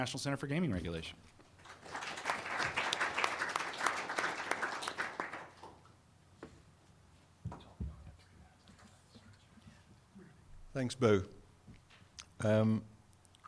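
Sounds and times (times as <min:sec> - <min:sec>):
speech: 0:00.0 - 0:02.0, 0:10.8 - 0:11.4, 0:12.4 - 0:12.9
audience applause welcoming a speaker at a talk on gaming regulation: 0:01.6 - 0:05.8.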